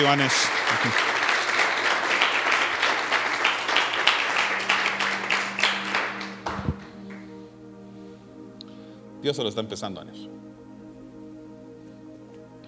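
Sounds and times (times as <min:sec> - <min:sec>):
speech: 0:00.0 - 0:01.2, 0:09.2 - 0:10.5
crowd clapping: 0:00.0 - 0:07.2
low steady hum: 0:06.1 - 0:12.6.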